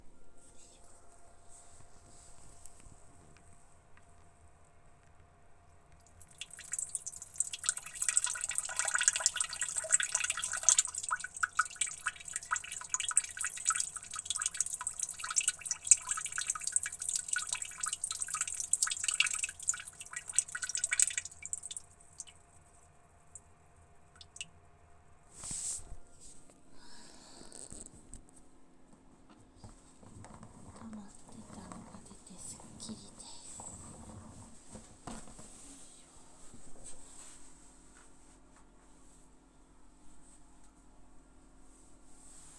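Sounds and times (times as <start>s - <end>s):
urinating in a toilet in the morning: 5.9s - 24.8s, 29.7s - 35.8s.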